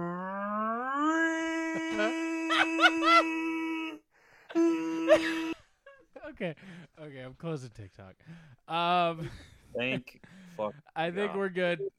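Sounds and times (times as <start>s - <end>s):
person imitating a tornado siren: 0.0s - 4.0s
speech: 1.9s - 3.4s, 4.5s - 5.6s, 6.3s - 11.9s.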